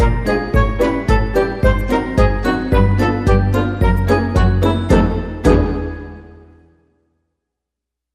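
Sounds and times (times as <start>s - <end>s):
modern percussion: 0.0s - 6.3s.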